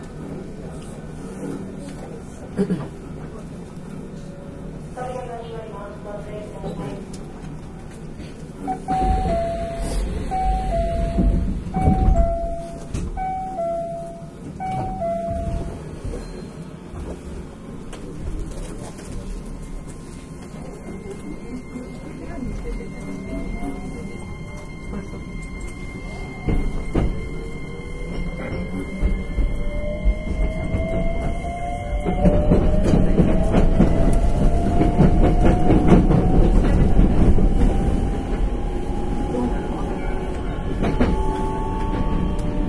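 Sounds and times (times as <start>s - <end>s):
train doors closing: 6.5s - 42.6s
train door chime: 8.7s - 16.6s, 20.5s - 31.5s.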